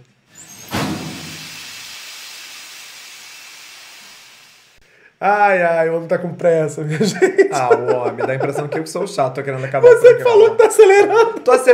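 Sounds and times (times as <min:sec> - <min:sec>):
sauna steam hissing: 0:00.3 - 0:04.8
speech: 0:05.2 - 0:11.7
laughter: 0:06.9 - 0:11.7.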